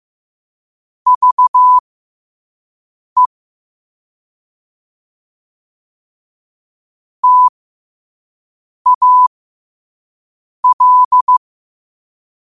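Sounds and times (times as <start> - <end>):
morse code at 5 wpm: 1.1 - 1.8, 7.2 - 7.5, 8.9 - 9.3, 10.6 - 11.4.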